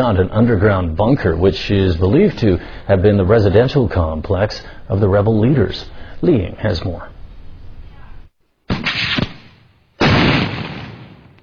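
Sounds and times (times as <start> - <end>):
speech: 0.0 - 7.1
heavy artillery fired by Sri Lankan government troops: 8.7 - 11.4.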